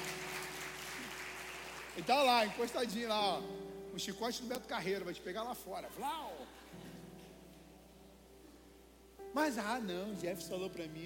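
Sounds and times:
audience applauding: 0.0s - 3.1s
speech: 2.0s - 7.0s, 9.3s - 11.0s.

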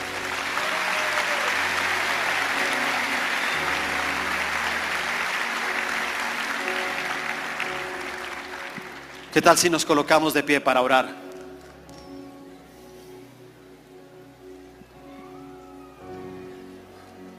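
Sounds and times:
audience applause: 0.0s - 10.0s
speech: 9.4s - 11.2s.

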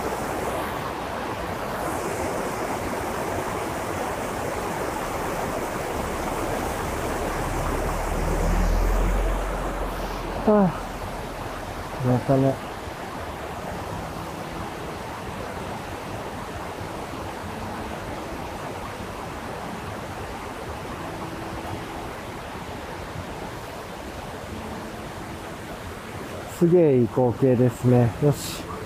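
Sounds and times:
babbling river stream: 0.0s - 28.8s
speech: 10.5s - 10.8s, 12.1s - 12.7s, 26.6s - 28.7s.

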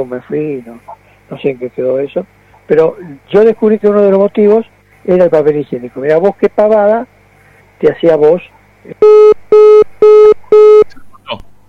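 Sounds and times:
speech: 0.0s - 7.1s, 7.8s - 9.1s
phone line tone beeps after a dropped call: 9.0s - 10.9s.

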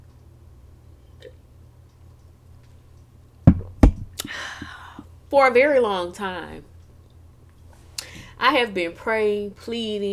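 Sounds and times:
cup being handled with dull thumps: 3.5s - 4.7s
speech: 5.3s - 6.7s, 8.4s - 10.1s.

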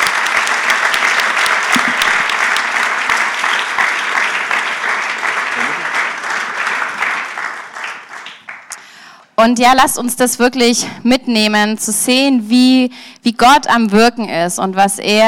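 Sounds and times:
audience applause: 0.0s - 8.8s
speech: 9.4s - 15.2s.

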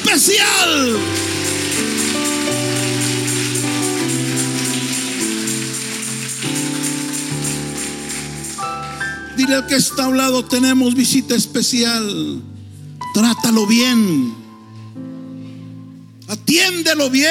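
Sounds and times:
audience applause: 0.1s - 9.2s
speech: 0.2s - 1.2s, 9.4s - 12.5s, 13.2s - 14.4s, 16.5s - 17.2s.

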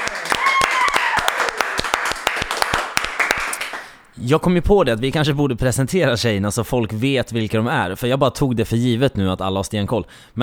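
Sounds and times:
audience applause: 0.0s - 4.0s
speech: 4.2s - 10.4s.

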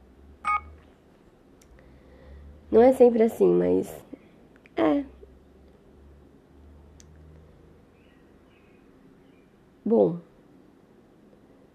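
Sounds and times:
phone alarm going off: 0.5s - 0.7s
speech: 2.7s - 4.1s, 9.9s - 10.2s.

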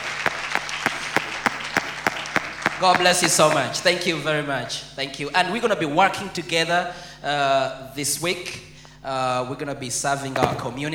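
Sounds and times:
audience clapping: 0.0s - 3.8s
speech: 2.8s - 10.9s.

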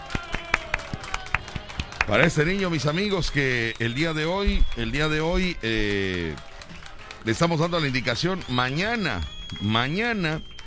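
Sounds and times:
rhythmic audience clapping: 0.0s - 10.6s
speech: 2.1s - 6.5s, 7.2s - 10.5s.

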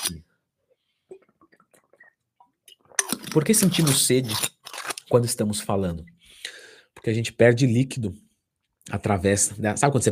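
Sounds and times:
speech: 0.0s - 0.3s, 3.4s - 4.5s, 5.1s - 6.2s, 7.0s - 8.2s, 8.8s - 10.1s
person sipping and swallowing water: 0.7s - 3.4s.

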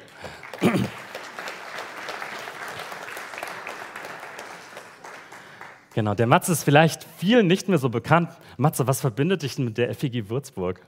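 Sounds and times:
audience applause: 0.0s - 6.0s
speech: 0.6s - 1.0s, 6.0s - 10.8s.

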